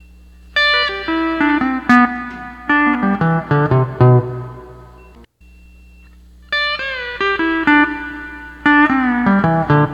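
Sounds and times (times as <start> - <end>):
12-string lap guitar playing: 0.6 - 5.2, 6.5 - 9.9.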